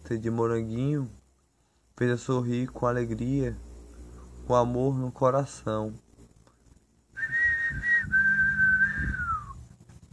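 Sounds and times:
low rumble: 0:00.0 - 0:10.1
speech: 0:00.1 - 0:01.2, 0:02.0 - 0:03.7, 0:04.5 - 0:06.0
person whistling in imitation of a bird's song: 0:07.2 - 0:09.6.

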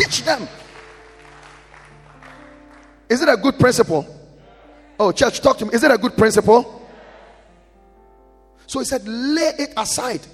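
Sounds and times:
audience clapping hands: 0:00.0 - 0:03.4
speech: 0:00.1 - 0:00.6, 0:03.1 - 0:04.2, 0:05.0 - 0:06.8, 0:08.7 - 0:10.3.

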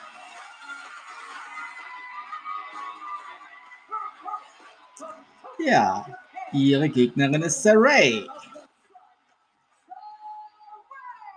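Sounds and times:
audience clapping: 0:00.0 - 0:08.2
crowd shouts: 0:00.0 - 0:08.7
speech: 0:05.0 - 0:08.4.

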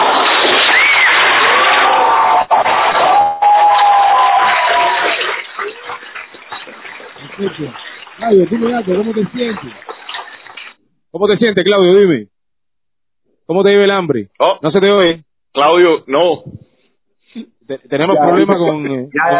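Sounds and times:
audience applause: 0:00.0 - 0:10.7
speech: 0:07.6 - 0:09.8, 0:11.1 - 0:12.3, 0:13.5 - 0:16.6, 0:17.3 - 0:19.3.

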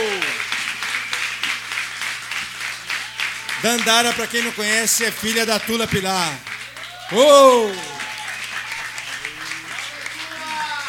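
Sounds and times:
audience applause: 0:00.0 - 0:10.8
speech: 0:03.6 - 0:06.5, 0:07.1 - 0:08.0.

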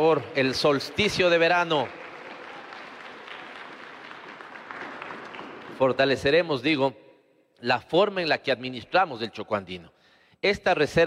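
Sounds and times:
speech: 0:00.0 - 0:02.0, 0:05.8 - 0:07.0, 0:07.6 - 0:11.0
crowd applauding: 0:00.0 - 0:06.3.

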